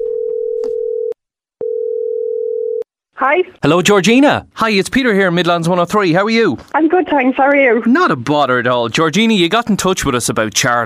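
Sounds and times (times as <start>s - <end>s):
low-pitched telephone dial tone of outgoing call: 0.0s - 2.8s
speech: 3.2s - 10.8s.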